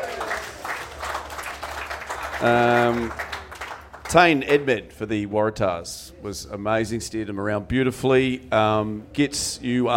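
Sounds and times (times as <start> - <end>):
crowd applause: 0.0 - 4.2
speech: 2.4 - 3.3, 4.1 - 9.9.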